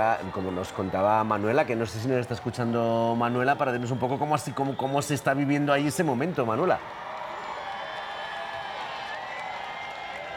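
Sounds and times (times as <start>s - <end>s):
speech: 0.0s - 7.1s
large crowd shouting and cheering joyfully: 0.0s - 10.3s
high whoops: 6.9s - 10.3s.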